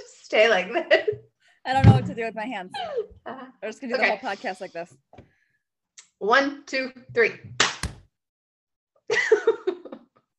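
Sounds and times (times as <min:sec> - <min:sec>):
speech: 0:00.3 - 0:05.3, 0:06.2 - 0:07.6
loud hand clap shaking the desk: 0:07.6 - 0:08.0.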